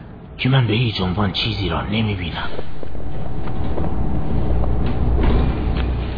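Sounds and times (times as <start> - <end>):
speech: 0.4 - 2.8
large vehicle engine rumbling: 2.4 - 6.1.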